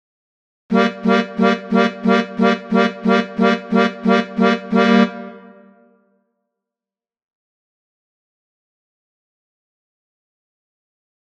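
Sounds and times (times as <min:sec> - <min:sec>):
melodica: 0:00.7 - 0:05.8.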